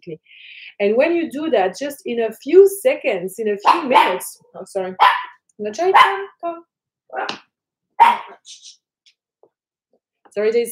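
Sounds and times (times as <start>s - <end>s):
speech: 0.0s - 7.4s, 8.0s - 8.8s, 10.3s - 10.6s
small pet dog barking: 3.6s - 4.2s, 5.0s - 6.3s, 8.0s - 8.4s.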